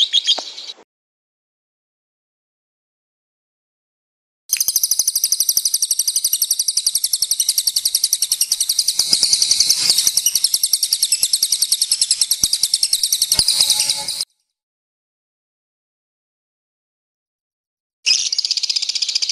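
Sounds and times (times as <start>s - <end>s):
lovebird chirp: 0.0s - 0.8s, 4.5s - 14.3s, 18.1s - 19.3s.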